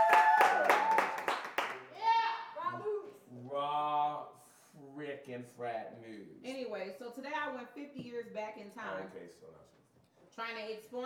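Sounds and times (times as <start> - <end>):
audience clapping in a room: 0.0 - 2.0
audience cheering in a room: 0.0 - 2.6
speech: 5.4 - 9.8, 10.4 - 11.0.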